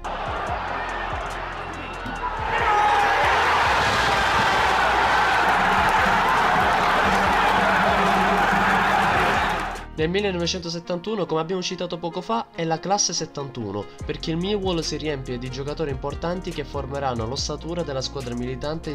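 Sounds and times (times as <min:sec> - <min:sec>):
football fans roaring after a goal: 0:00.0 - 0:09.9
speech: 0:10.0 - 0:18.9.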